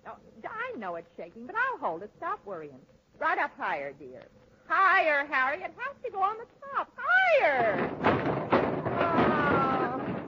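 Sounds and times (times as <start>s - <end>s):
speech: 0.8s - 8.4s
Christmas tree knocked over: 7.6s - 10.2s.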